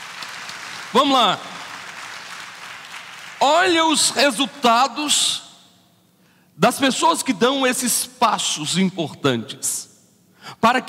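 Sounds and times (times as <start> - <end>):
audience applauding: 0.0 - 3.9
speech: 0.9 - 1.5, 3.4 - 5.4, 6.6 - 10.8.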